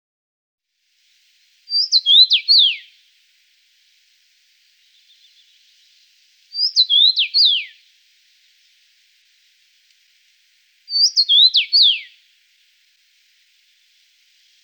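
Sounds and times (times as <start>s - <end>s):
rosefinch sharp falling whistled song: 1.7s - 3.0s, 4.7s - 7.9s, 10.8s - 12.3s.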